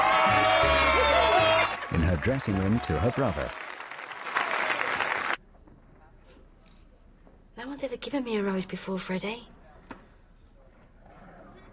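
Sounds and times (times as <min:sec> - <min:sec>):
theatre audience applause: 0:00.0 - 0:05.4
speech: 0:02.2 - 0:03.6, 0:07.8 - 0:09.6.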